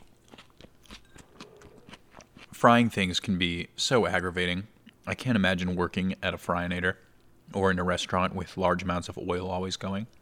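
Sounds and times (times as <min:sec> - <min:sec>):
falafel broken apart by hand: 0:00.0 - 0:02.6
speech: 0:02.6 - 0:10.2.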